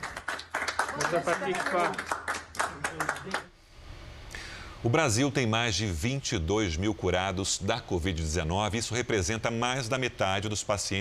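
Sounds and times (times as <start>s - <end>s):
colleagues applauding: 0.0s - 3.6s
speech: 1.0s - 2.2s, 3.0s - 3.5s, 4.8s - 11.0s.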